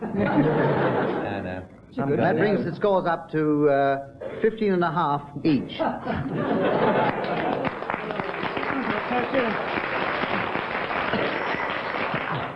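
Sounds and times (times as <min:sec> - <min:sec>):
laughter: 0:00.0 - 0:01.6, 0:06.0 - 0:12.5
speech: 0:00.2 - 0:01.2, 0:01.9 - 0:07.4, 0:09.2 - 0:09.8
audience clapping: 0:06.6 - 0:12.5.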